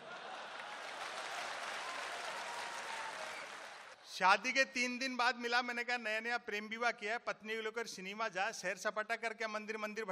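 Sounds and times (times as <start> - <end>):
crowd clapping: 0.0 - 4.0
speech: 4.1 - 10.1.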